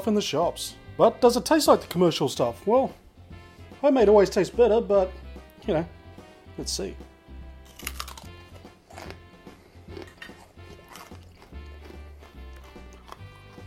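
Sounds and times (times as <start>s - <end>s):
speech: 0.0s - 3.0s, 3.8s - 6.0s, 6.6s - 7.1s
crunching and chewing homemade honeycomb toffee: 7.6s - 13.6s.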